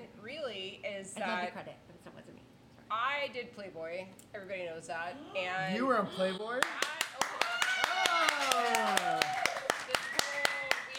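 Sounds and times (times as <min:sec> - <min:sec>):
speech: 0:01.0 - 0:02.2, 0:02.9 - 0:06.9
audience clapping: 0:06.6 - 0:10.9.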